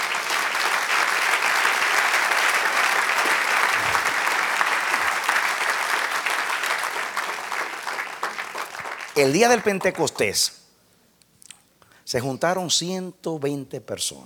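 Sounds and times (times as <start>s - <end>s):
audience applause: 0.0s - 10.3s
speech: 9.2s - 10.6s, 12.1s - 14.2s.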